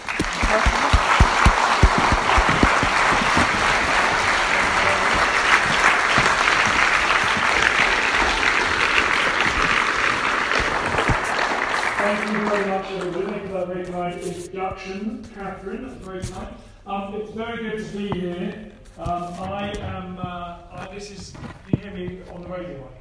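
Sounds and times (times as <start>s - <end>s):
audience applause: 0.0s - 13.4s
speech: 14.7s - 23.0s.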